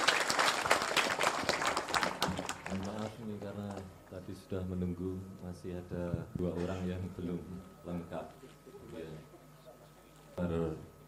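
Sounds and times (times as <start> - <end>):
audience applause greeting performers at an Indonesian stage event: 0.0 - 3.8
speech: 4.5 - 8.5.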